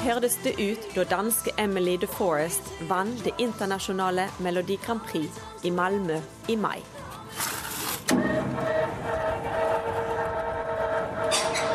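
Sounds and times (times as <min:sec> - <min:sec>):
speech: 0:00.0 - 0:07.5
large shipyard hall gate opening: 0:07.8 - 0:11.7.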